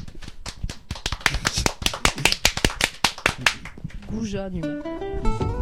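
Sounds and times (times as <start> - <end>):
people clapping: 0.0 - 4.1
speech: 4.1 - 5.5.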